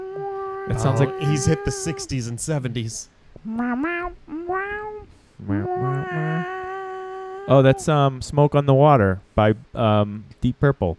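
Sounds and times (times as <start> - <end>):
cat meowing: 0.0 - 2.1, 3.7 - 7.9
speech: 0.7 - 4.6, 5.4 - 6.6, 7.4 - 10.9.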